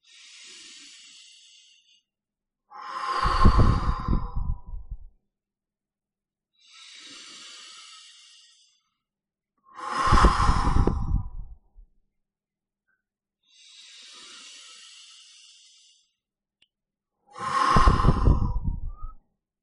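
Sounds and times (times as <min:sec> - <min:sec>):
person taking slow deep breaths: 0:00.0 - 0:02.1, 0:02.7 - 0:05.2, 0:06.6 - 0:09.0, 0:09.7 - 0:11.9, 0:13.4 - 0:16.2, 0:17.3 - 0:19.2.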